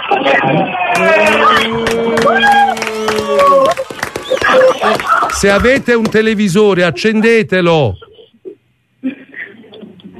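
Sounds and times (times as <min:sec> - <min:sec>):
speech: 0:00.1 - 0:01.9, 0:05.4 - 0:08.0
crowd shouting together in unison: 0:00.8 - 0:05.4.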